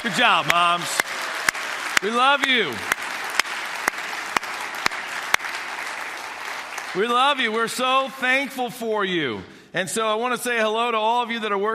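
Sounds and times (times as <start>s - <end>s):
speech: 0.0s - 1.1s, 2.0s - 3.0s, 6.9s - 11.7s
audience applause: 0.0s - 8.2s.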